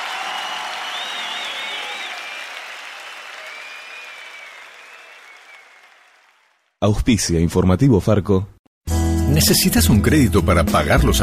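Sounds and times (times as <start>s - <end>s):
whistles: 0.0s - 6.5s
large crowd applauding loudly: 0.0s - 6.8s
speech: 6.8s - 8.6s, 9.3s - 11.2s.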